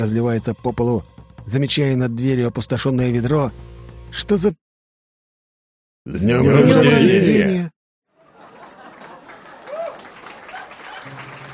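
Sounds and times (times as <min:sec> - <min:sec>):
speech: 0:00.0 - 0:04.6, 0:06.0 - 0:07.8
crowd laughing: 0:06.2 - 0:11.5
applause from a celebrating crowd: 0:08.2 - 0:11.5.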